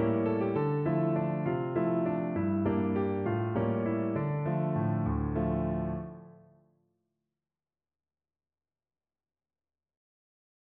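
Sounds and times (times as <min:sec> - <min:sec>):
piano: 0:00.0 - 0:06.7.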